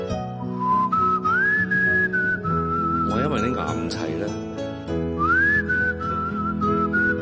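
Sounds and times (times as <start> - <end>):
person whistling a tune: 0.4 - 3.7, 5.2 - 7.2
speech: 3.2 - 5.0.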